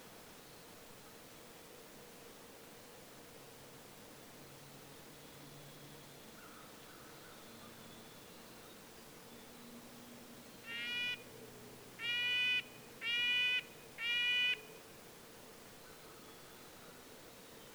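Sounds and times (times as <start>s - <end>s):
red-breasted nuthatch nasal horn-like calls: 12.0s - 14.7s.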